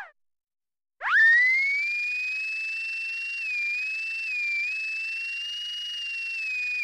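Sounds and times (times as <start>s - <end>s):
dental drill: 1.2s - 6.6s.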